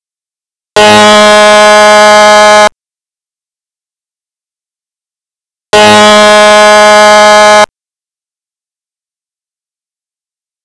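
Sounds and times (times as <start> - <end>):
dam break alert: 0.8 - 2.7, 5.8 - 7.7.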